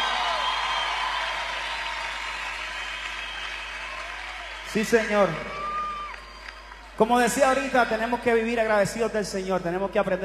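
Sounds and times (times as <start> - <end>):
audience applause: 0.0 - 7.7
speech: 4.7 - 5.6, 7.0 - 10.2.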